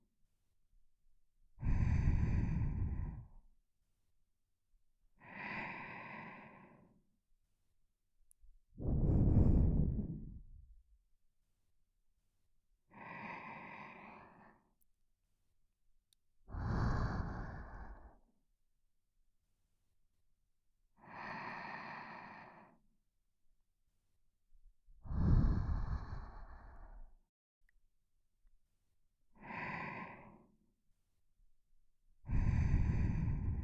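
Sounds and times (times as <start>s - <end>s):
person breathing in sleep: 1.6s - 3.4s, 5.2s - 7.0s, 8.8s - 10.7s, 12.9s - 14.7s, 16.5s - 18.2s, 21.0s - 22.8s, 25.0s - 27.2s, 29.4s - 30.6s, 32.3s - 33.6s.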